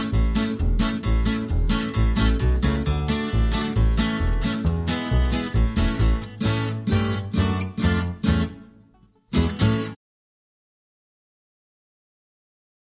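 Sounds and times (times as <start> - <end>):
banjo tune: 0.0 - 10.0.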